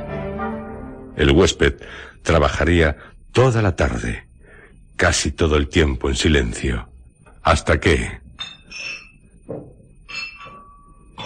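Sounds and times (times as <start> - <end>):
speech: 1.2 - 4.3, 5.0 - 9.7
glass bottles clinking together: 8.3 - 11.2.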